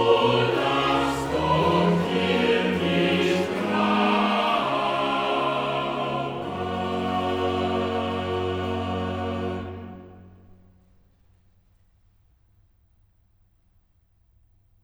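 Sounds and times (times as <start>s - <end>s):
choir singing: 0.0s - 10.6s.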